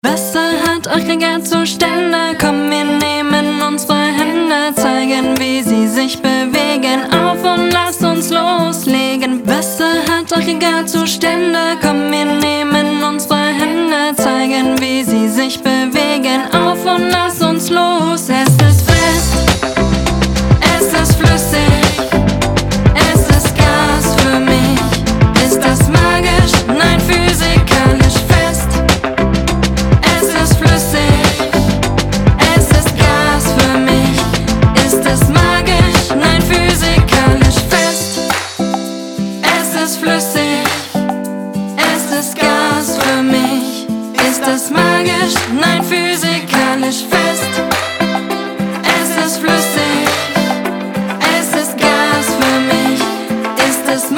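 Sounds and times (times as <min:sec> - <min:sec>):
song with rapping: 0:00.0 - 0:08.2, 0:08.8 - 0:54.1.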